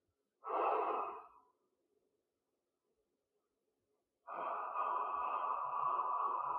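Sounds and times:
spray inhaled on one breath: 0.4s - 1.4s, 4.3s - 6.5s
breathy exhale: 0.4s - 1.5s, 4.3s - 6.5s.

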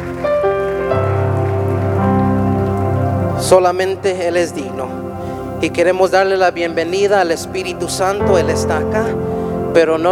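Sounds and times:
audience applause: 0.0s - 3.4s
speech: 3.5s - 5.0s, 5.6s - 10.1s.

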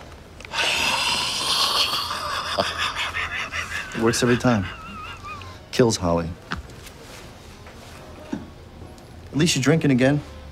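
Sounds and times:
person breathing onto a tie: 0.5s - 4.0s
laughter: 1.5s - 5.7s
speech: 2.6s - 2.8s, 4.0s - 4.8s, 5.8s - 6.4s, 9.4s - 10.3s.

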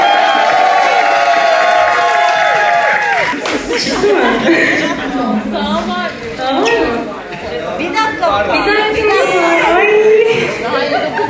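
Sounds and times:
crowd applauding: 0.0s - 5.0s
crowd cheering: 0.0s - 7.2s
laughter: 3.0s - 11.2s.

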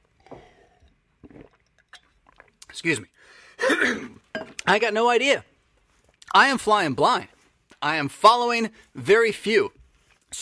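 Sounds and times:
sipping water: 0.0s - 4.7s
speech: 2.8s - 5.5s, 6.3s - 10.3s.

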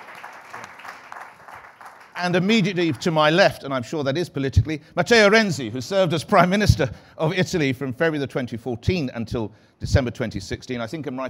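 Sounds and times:
audience applause: 0.0s - 3.1s
speech: 2.2s - 11.2s.

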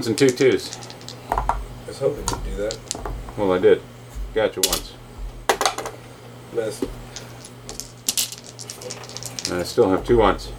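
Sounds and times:
speech: 0.0s - 1.0s, 2.0s - 5.0s, 6.5s - 7.0s, 9.5s - 10.5s
dice rattling on a table: 0.0s - 1.6s, 2.2s - 3.6s, 7.1s - 10.3s
low steady hum: 0.0s - 10.5s.

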